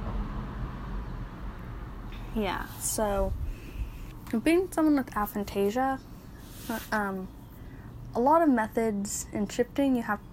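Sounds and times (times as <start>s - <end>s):
car passing by: 0.0s - 3.0s
speech: 2.3s - 3.5s, 4.3s - 6.1s, 6.7s - 7.4s, 8.1s - 10.3s.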